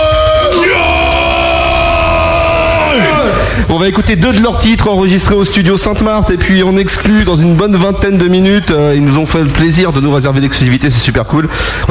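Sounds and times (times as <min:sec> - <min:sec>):
crowd cheering and yelling for a metal band at a live show: 0:00.0 - 0:03.7
speech: 0:03.6 - 0:11.8.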